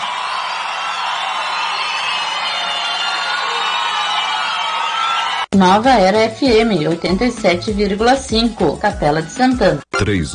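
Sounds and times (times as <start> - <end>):
crowd cheering and whooping on a radio station: 0.0 - 5.6
speech: 5.6 - 10.3.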